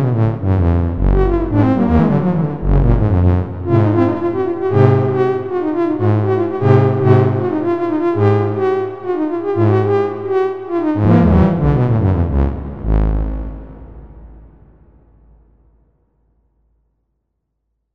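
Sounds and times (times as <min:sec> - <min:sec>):
synthesizer prelude in 13 equal temperament: 0:00.0 - 0:13.9.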